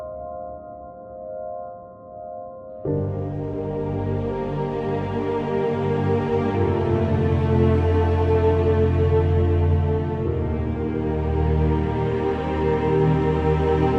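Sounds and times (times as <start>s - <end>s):
orchestral arrangement: 2.9s - 13.9s.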